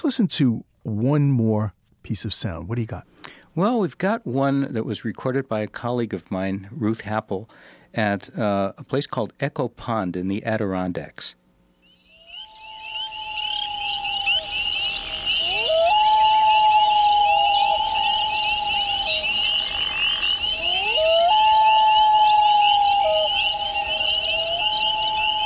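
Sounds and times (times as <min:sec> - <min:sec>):
speech: 0:00.0 - 0:11.4
high-pitched chorus of frogs or insects: 0:11.8 - 0:25.4
common loon calls: 0:11.9 - 0:25.4.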